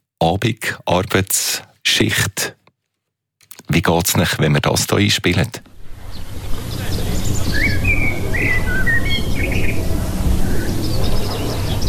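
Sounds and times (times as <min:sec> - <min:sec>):
speech: 0:00.3 - 0:02.6, 0:03.7 - 0:05.7
birdsong: 0:05.8 - 0:11.8.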